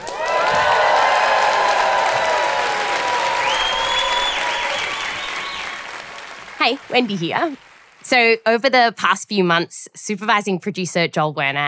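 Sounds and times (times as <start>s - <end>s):
live audience applauding and cheering: 0.0s - 8.2s
whoops and high whistles from the crowd: 3.3s - 5.8s
speech: 6.6s - 11.6s.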